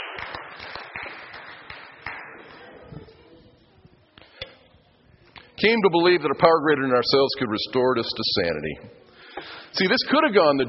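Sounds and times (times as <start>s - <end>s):
audience clapping: 0.0s - 2.6s
speech: 5.6s - 9.0s, 9.8s - 10.6s.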